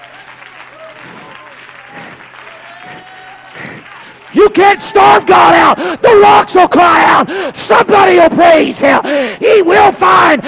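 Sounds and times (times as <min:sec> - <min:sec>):
audience clapping: 0:00.0 - 0:05.8
speech: 0:04.3 - 0:10.4.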